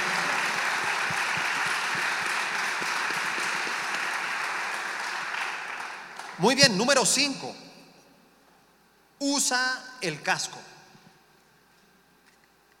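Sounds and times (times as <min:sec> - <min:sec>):
loud audience applause: 0:00.0 - 0:06.4
speech: 0:06.4 - 0:07.6, 0:09.2 - 0:10.8.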